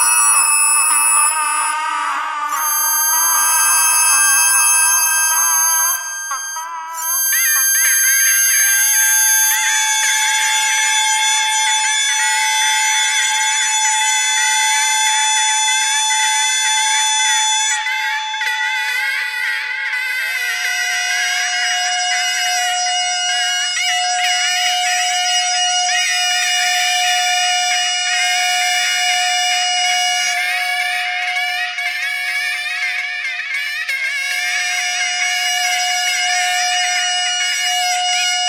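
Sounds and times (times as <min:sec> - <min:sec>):
bagpipe: 0:00.0 - 0:38.4.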